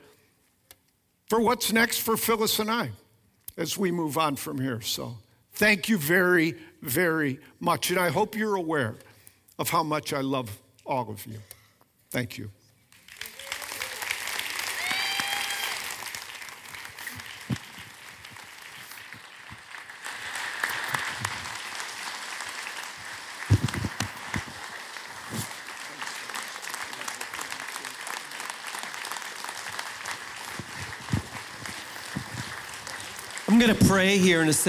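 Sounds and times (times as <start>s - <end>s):
speech: 1.3s - 3.0s, 3.6s - 12.6s, 33.8s - 34.6s
audience applause: 13.0s - 34.6s.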